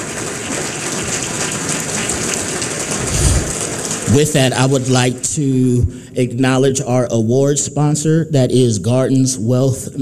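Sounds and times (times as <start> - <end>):
audience applause: 0.0 - 5.2
speech: 4.1 - 10.0.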